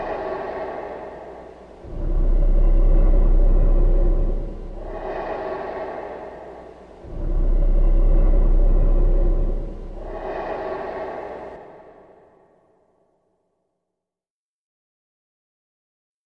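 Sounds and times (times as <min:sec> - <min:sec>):
human bassy exhale through reverb: 0:00.0 - 0:12.5.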